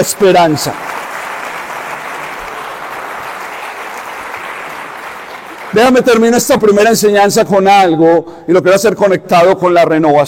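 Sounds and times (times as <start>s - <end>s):
speech: 0.0s - 1.0s, 5.7s - 10.2s
crowd applause: 0.0s - 6.3s.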